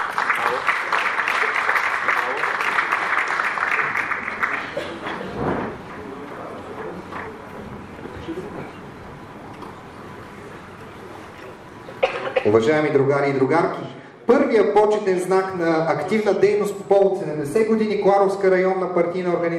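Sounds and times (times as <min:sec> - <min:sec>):
audience applause: 0:00.0 - 0:05.4
speech: 0:12.5 - 0:13.9, 0:14.5 - 0:19.5.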